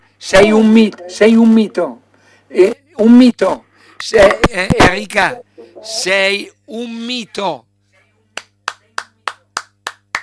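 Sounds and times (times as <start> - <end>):
speech: 0.2 - 7.7
sharp hand claps from a single person: 8.4 - 10.2.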